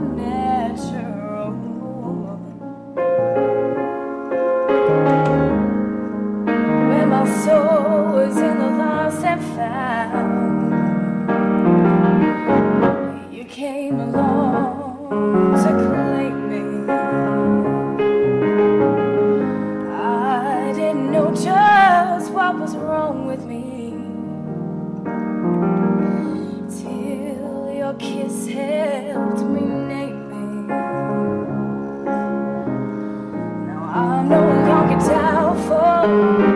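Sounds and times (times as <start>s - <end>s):
person singing: 0.0s - 2.6s, 6.8s - 11.3s, 13.1s - 18.0s, 19.4s - 24.3s, 26.1s - 32.1s, 33.6s - 36.5s
piano: 0.0s - 36.5s.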